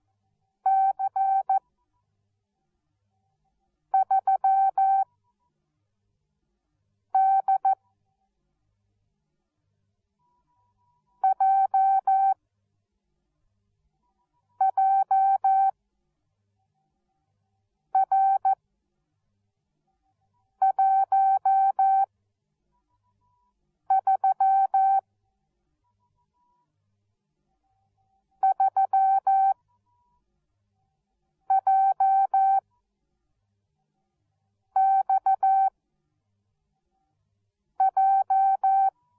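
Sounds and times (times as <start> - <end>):
morse code beeps: 0.7 - 1.6, 4.0 - 5.1, 7.2 - 7.8, 11.2 - 12.4, 14.6 - 15.7, 18.0 - 18.6, 20.6 - 22.1, 23.9 - 25.0, 28.4 - 30.2, 31.5 - 32.6, 34.8 - 35.7, 37.8 - 38.9.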